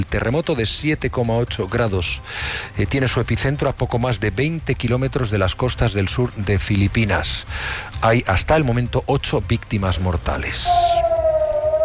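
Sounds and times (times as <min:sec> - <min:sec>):
speech: 0:00.0 - 0:11.0
air raid sirens in Israel after missile interception: 0:10.6 - 0:11.8.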